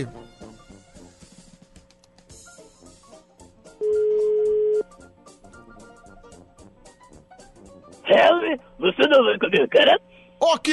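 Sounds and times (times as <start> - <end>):
speech: 0.0 - 0.2, 8.2 - 10.7
telephone ring tone from a call being placed: 3.8 - 4.8.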